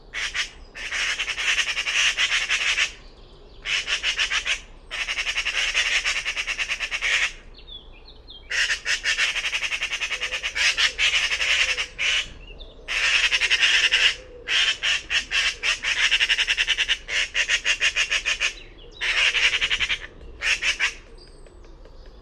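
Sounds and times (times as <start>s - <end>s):
bird uttering harsh grating squawks: 0.1s - 3.0s, 3.6s - 7.4s, 8.5s - 21.1s.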